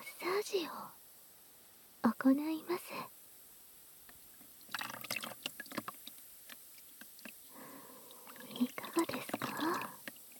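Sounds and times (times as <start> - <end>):
speech: 0.5 - 1.0, 2.2 - 3.2
hot water poured over the body during a massage: 4.3 - 10.3.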